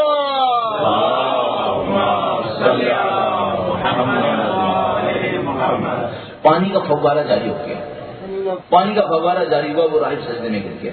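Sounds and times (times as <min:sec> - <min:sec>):
crowd at a religious sermon chanting a response: 0:00.7 - 0:06.3
speech: 0:06.4 - 0:10.9.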